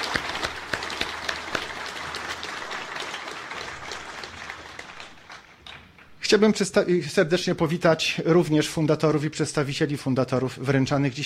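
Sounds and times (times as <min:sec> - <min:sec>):
audience applause: 0:00.0 - 0:05.8
speech: 0:06.3 - 0:11.2.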